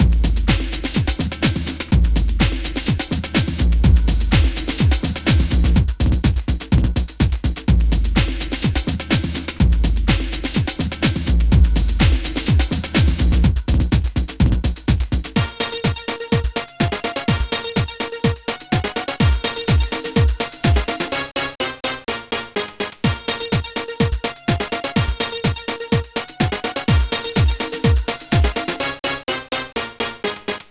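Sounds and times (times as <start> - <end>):
Amiga house music mix: 0.0 - 30.7.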